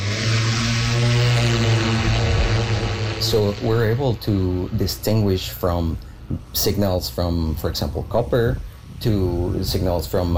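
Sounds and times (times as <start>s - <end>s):
aircraft engine taking off on a magnetic survey flight: 0.0s - 6.6s
speech: 3.3s - 10.3s.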